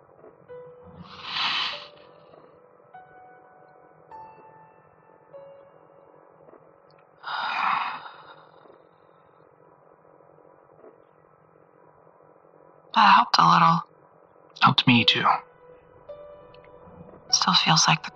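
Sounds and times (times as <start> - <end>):
slow deep breath in and out: 1.0 - 2.4, 7.2 - 9.4
speech: 13.0 - 13.9, 14.8 - 15.4, 17.5 - 18.1.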